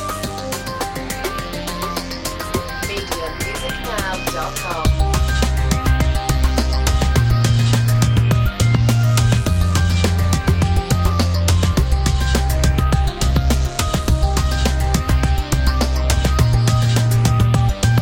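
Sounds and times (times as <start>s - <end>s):
ambient breakbeat on-hold music: 0.0s - 17.9s.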